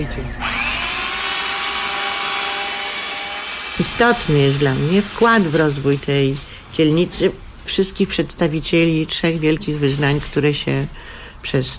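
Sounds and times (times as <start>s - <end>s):
speech: 0.0s - 0.5s, 3.8s - 11.7s
power saw cutting through wood: 0.4s - 6.4s.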